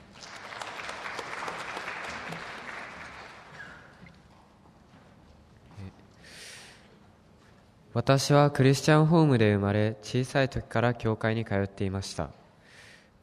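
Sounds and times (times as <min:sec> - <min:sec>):
audience applause: 0:00.0 - 0:04.0
speech: 0:08.0 - 0:12.4.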